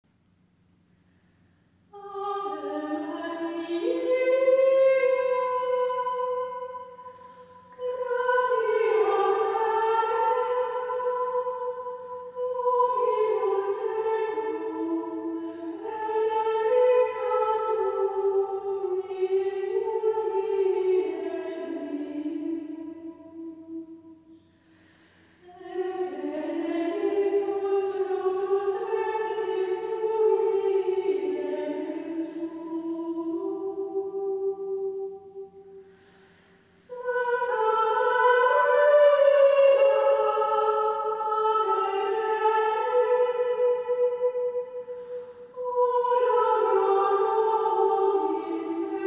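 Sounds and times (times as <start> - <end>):
church music: 2.0 - 24.3, 25.4 - 49.0.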